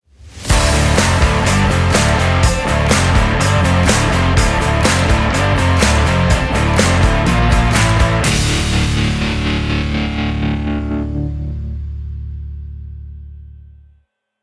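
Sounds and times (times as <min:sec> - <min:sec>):
groovy rock ringtone: 0:00.5 - 0:11.5.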